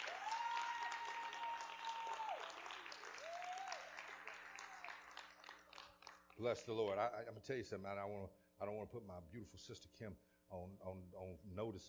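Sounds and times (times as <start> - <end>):
church audience clapping hands: 0.0 - 6.7
speech: 6.4 - 11.8.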